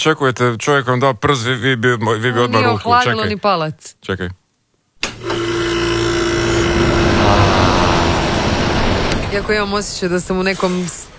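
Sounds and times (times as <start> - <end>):
speech: 0.0 - 4.4, 9.3 - 11.1
ceiling fan whirring: 5.0 - 10.2.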